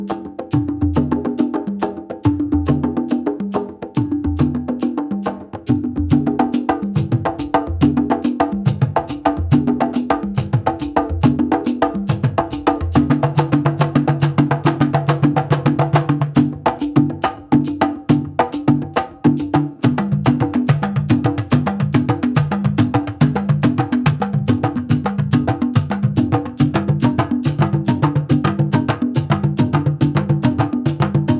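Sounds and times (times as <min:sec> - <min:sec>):
tribal beat on African percussion: 0:00.0 - 0:31.3.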